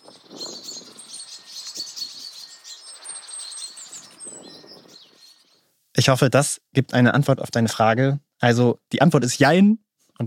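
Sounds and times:
chaffinches, blackbirds and tits mobbing an owl: 0.0 - 5.7
speech: 6.0 - 10.2.

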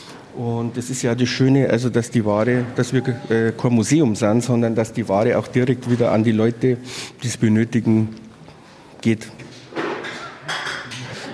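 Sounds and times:
speech: 0.4 - 8.3, 9.0 - 9.5
glass and porcelain items rattling: 10.0 - 11.2.

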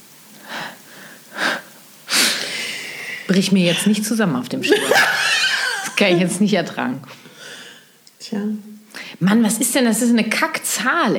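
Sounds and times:
person breathing audibly: 0.4 - 3.9, 7.2 - 8.0
speech: 3.3 - 5.2, 6.0 - 7.3, 8.3 - 8.6, 9.2 - 11.1
laughter: 3.5 - 6.5.

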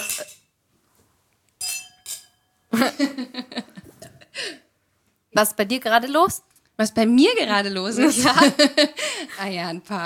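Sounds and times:
glasses clinking together in a toast: 0.0 - 0.5, 1.6 - 2.7
speech: 2.8 - 3.6, 5.4 - 10.0.

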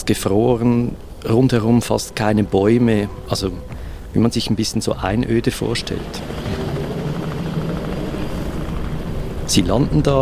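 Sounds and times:
speech: 0.0 - 6.6, 9.5 - 10.2
helicopter flying: 2.0 - 10.2.

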